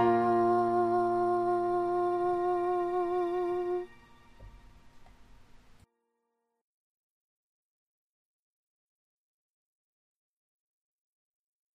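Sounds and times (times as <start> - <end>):
soprano singing top part: 0.0 - 4.5.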